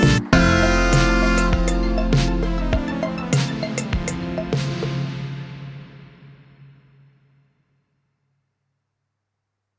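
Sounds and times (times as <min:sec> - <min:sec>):
instrumental music: 0:00.0 - 0:06.1.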